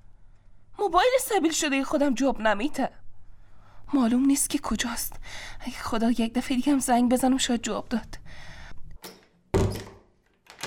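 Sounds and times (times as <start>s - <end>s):
speech: 0.9s - 3.0s, 3.9s - 8.5s
door opening with a scrape and thud: 9.0s - 10.6s.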